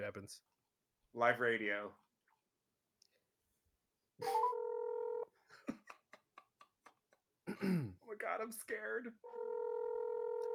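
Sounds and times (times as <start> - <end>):
speech: 0.0 - 0.5, 1.1 - 2.0, 4.2 - 4.5, 7.5 - 9.7
telephone number dialed on speakerphone: 4.2 - 5.2, 9.3 - 10.5.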